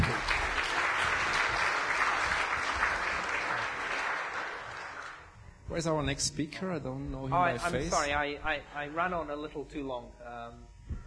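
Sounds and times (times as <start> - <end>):
audience applause: 0.0 - 5.3
speech: 5.8 - 10.7.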